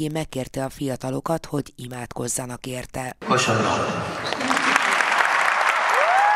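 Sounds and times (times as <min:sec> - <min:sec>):
speech: 0:00.0 - 0:04.5
young audience applause for Pope Francis: 0:04.1 - 0:06.3.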